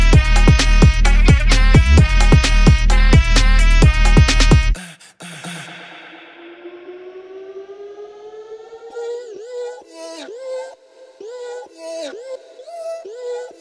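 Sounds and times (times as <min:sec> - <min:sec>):
baile funk music: 0:00.0 - 0:04.8.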